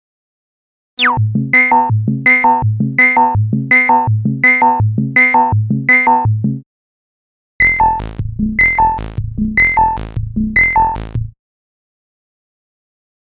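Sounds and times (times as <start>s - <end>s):
Moog modular synthesizer: 1.0s - 6.3s, 7.6s - 11.3s.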